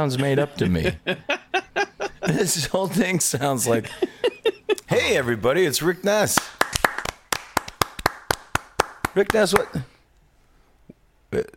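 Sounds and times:
speech: 0:00.0 - 0:01.4, 0:02.3 - 0:04.3, 0:04.9 - 0:06.6, 0:09.2 - 0:09.9, 0:11.3 - 0:11.5
laughter: 0:00.1 - 0:05.4
hands clapping: 0:06.3 - 0:09.9.

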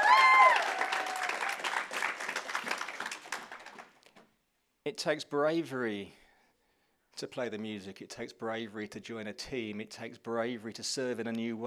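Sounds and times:
round of applause: 0:00.0 - 0:04.1
speech: 0:04.9 - 0:06.2, 0:07.2 - 0:11.6.

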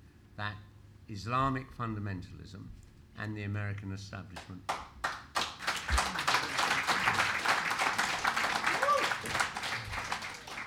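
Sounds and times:
speech: 0:00.4 - 0:04.9
audience applause: 0:05.0 - 0:10.6.

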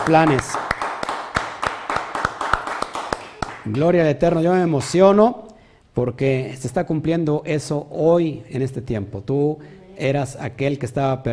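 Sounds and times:
speech: 0:00.0 - 0:00.6, 0:03.6 - 0:05.4, 0:06.0 - 0:11.3
audience applause: 0:00.0 - 0:03.8
rhythmic clapping: 0:00.0 - 0:05.0.

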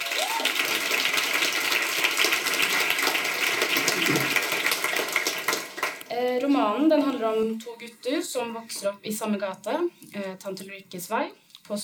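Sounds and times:
audience clapping: 0:00.0 - 0:06.1
speech: 0:06.3 - 0:11.8.

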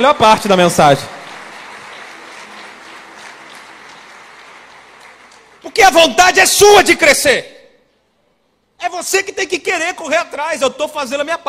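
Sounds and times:
speech: 0:00.0 - 0:01.2, 0:05.9 - 0:07.6, 0:08.8 - 0:11.4
audience applause: 0:00.0 - 0:05.6.

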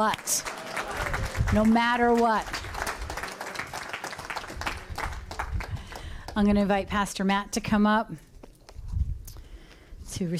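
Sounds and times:
speech: 0:00.0 - 0:00.5, 0:01.5 - 0:02.6, 0:06.4 - 0:08.3, 0:10.2 - 0:10.3
audience cheering and clapping: 0:00.0 - 0:06.0.

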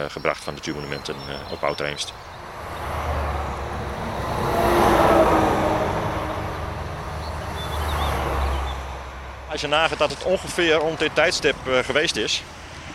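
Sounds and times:
speech: 0:00.0 - 0:02.4, 0:09.6 - 0:12.6
road traffic passing by: 0:00.0 - 0:12.9.

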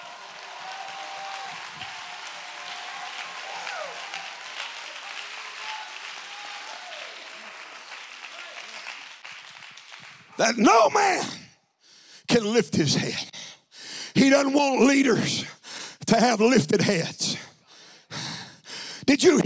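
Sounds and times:
audience clapping hands: 0:00.0 - 0:10.6
speech: 0:10.4 - 0:11.4, 0:12.3 - 0:13.3, 0:14.3 - 0:17.4, 0:19.2 - 0:19.4.

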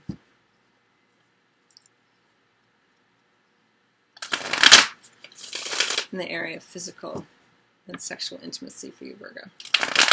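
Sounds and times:
tarot cards being shuffled: 0:04.2 - 0:06.1
speech: 0:06.1 - 0:10.1.

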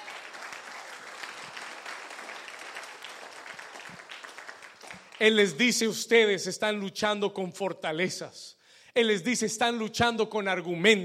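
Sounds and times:
audience applauding: 0:00.0 - 0:05.5
speech: 0:05.2 - 0:11.0.

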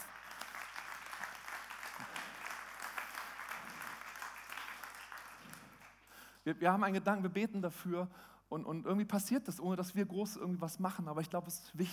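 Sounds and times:
audience applause: 0:00.0 - 0:06.1
speech: 0:06.4 - 0:11.9.

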